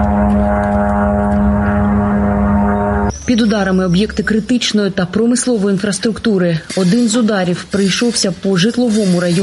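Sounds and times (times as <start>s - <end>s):
attack drone propeller engine buzzing overhead: 0.0s - 4.1s
speech: 3.3s - 9.4s.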